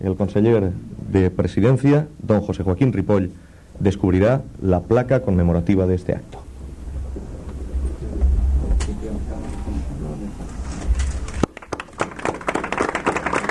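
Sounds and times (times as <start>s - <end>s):
speech: 0.0s - 6.4s
low rumble: 0.0s - 11.5s
crowd applause at inauguration ceremony: 11.2s - 13.4s.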